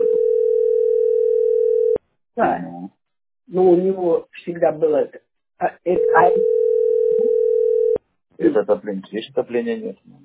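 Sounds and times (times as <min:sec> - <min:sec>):
telephone dial tone while calling an accounting office: 0:00.0 - 0:02.0, 0:06.2 - 0:08.0
speech: 0:02.4 - 0:06.7, 0:08.4 - 0:10.2.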